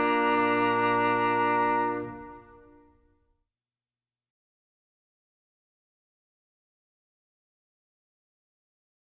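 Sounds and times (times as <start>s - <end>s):
instrumental music: 0.0s - 3.0s.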